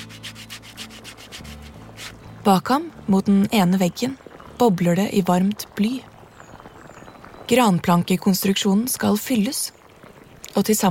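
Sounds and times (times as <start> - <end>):
sandpaper rasping on a wooden plank: 0.0 - 2.2
speech: 2.4 - 6.1, 7.5 - 9.8, 10.6 - 10.8.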